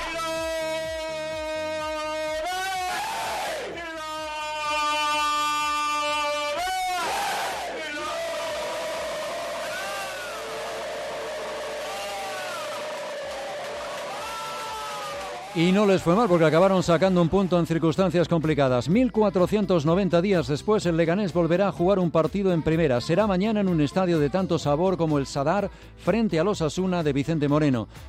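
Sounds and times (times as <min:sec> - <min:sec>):
pre-match team war cries led by a kit man: 0:00.0 - 0:16.6
speech: 0:15.6 - 0:28.0.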